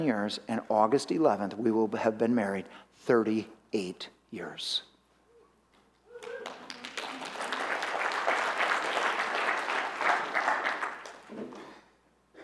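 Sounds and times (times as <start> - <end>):
speech: 0.0 - 4.9
audience applause: 6.1 - 11.6.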